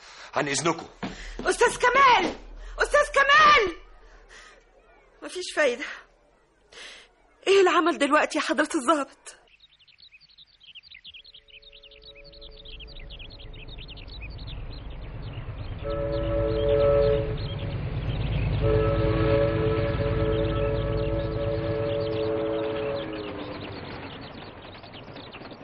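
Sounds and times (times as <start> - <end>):
speech: 0.4 - 3.8, 5.2 - 6.0, 6.8 - 9.4, 15.9 - 16.3
train passing by: 0.6 - 4.6, 11.5 - 25.6.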